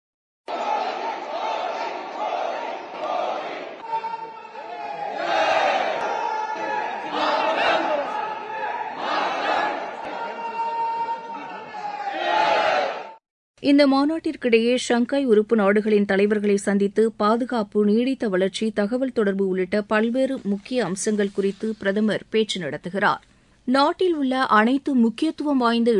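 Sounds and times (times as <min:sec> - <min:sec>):
Indian diaspora crowd cheering and chanting to welcome Prime Minister Narendra Modi in China: 0:00.5 - 0:13.2
speech: 0:13.6 - 0:25.9.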